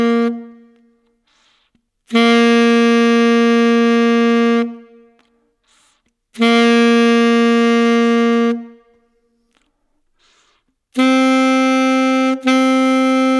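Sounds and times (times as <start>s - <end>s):
alto saxophone whole note: 2.1s - 4.8s, 6.4s - 8.8s, 11.0s - 13.3s.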